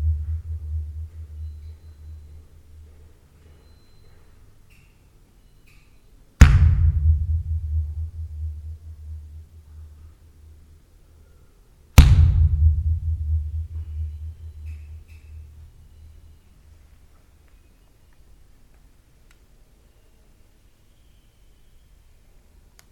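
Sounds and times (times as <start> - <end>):
echoes in a hall: 0.0 - 3.3, 6.4 - 11.4, 12.0 - 16.6.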